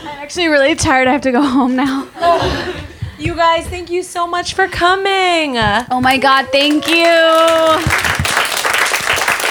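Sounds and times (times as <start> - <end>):
speech: 0.3 - 8.1
applause: 6.6 - 9.4.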